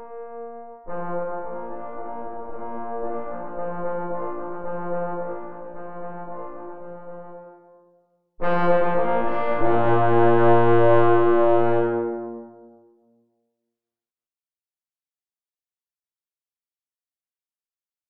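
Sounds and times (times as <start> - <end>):
hunters' march on three parforce horns: 0.1 - 7.4, 8.4 - 13.0.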